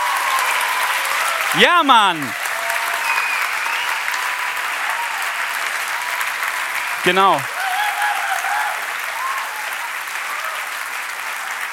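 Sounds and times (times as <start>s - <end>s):
audience applause: 0.0s - 11.7s
speech: 1.5s - 2.4s, 7.0s - 7.6s.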